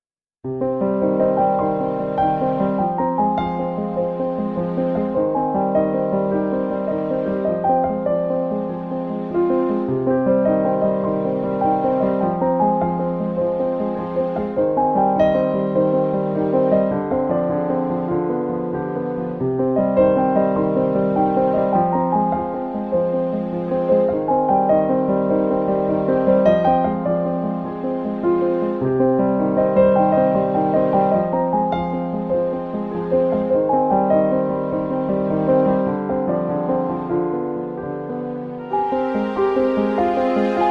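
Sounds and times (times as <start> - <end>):
sad classical music: 0.4 - 40.7.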